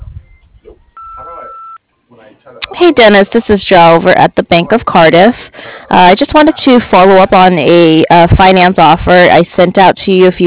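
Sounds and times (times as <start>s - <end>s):
voicemail recording tone beep: 0.2s - 1.8s
speech: 2.3s - 10.4s.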